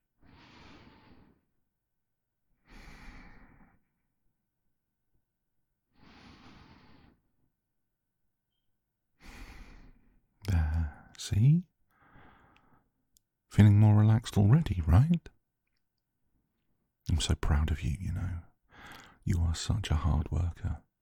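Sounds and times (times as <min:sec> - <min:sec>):
slow deep breathing: 0:00.2 - 0:01.5, 0:02.6 - 0:03.9, 0:06.0 - 0:07.3, 0:09.2 - 0:11.2, 0:11.9 - 0:12.9, 0:18.7 - 0:19.2
speech: 0:11.3 - 0:11.7, 0:13.6 - 0:15.4, 0:17.1 - 0:18.5, 0:19.2 - 0:20.8.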